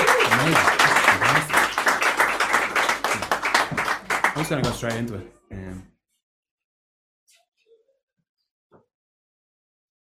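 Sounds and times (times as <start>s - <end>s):
audience applause: 0.0s - 5.1s
speech: 4.5s - 6.0s.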